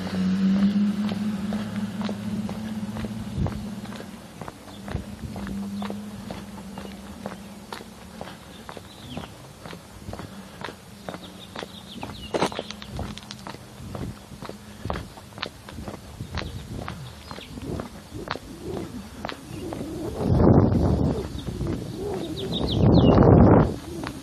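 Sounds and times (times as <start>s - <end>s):
footsteps walking: 0.0s - 24.2s.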